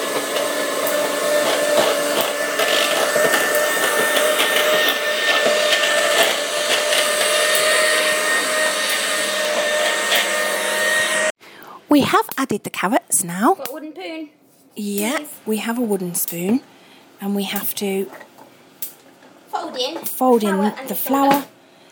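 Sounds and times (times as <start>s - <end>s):
electric mixer mixing cake batter with carrots: 0.0s - 11.4s
speech: 12.5s - 18.2s, 19.8s - 21.5s.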